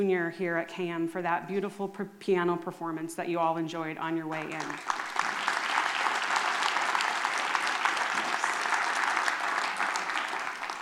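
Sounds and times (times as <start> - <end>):
speech: 0.0 - 5.0
audience applause: 4.6 - 10.8.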